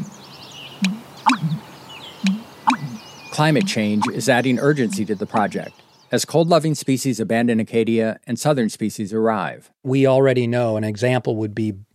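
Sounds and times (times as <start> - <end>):
American bittern call: 0.0 - 5.9
speech: 3.4 - 11.9.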